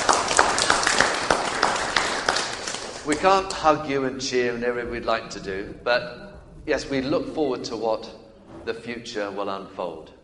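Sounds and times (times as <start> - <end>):
scattered audience clapping: 0.0 - 3.6
speech: 3.1 - 10.2.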